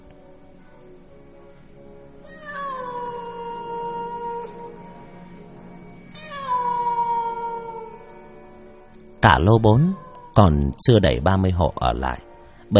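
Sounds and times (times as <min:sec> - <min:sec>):
black cat on a balcony yowling: 0:02.2 - 0:05.0, 0:06.1 - 0:08.2, 0:09.6 - 0:10.7
speech: 0:09.2 - 0:12.7.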